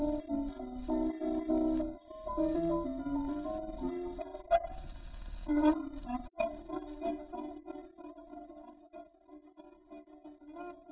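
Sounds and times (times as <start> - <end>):
jazz music: 0.0 - 7.8.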